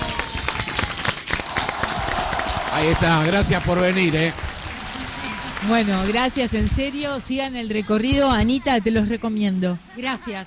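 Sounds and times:
audience applause for a comedian: 0.0s - 7.6s
speech: 2.8s - 4.4s, 5.6s - 10.4s.

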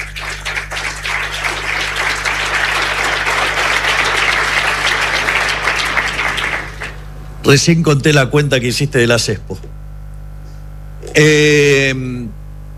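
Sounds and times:
audience applause: 0.0s - 7.1s
speech: 7.4s - 9.7s, 11.2s - 12.4s.

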